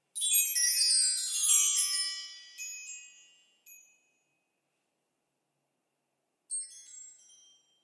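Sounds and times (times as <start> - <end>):
wind chimes: 0.2 - 4.6, 6.5 - 7.8.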